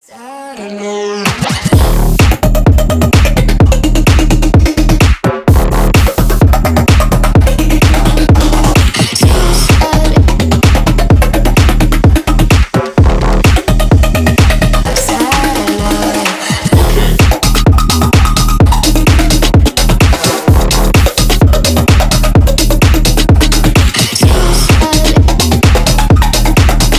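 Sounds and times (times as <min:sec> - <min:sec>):
remix music: 0:00.3 - 0:26.9.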